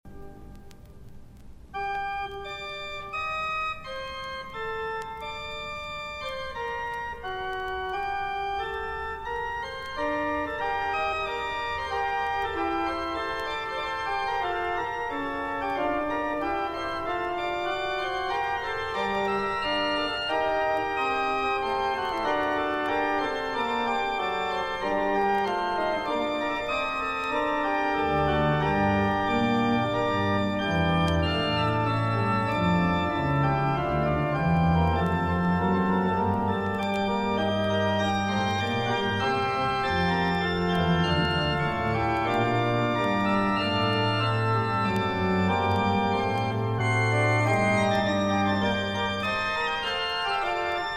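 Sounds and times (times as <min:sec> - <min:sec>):
fugue: 0:00.1 - 0:50.9.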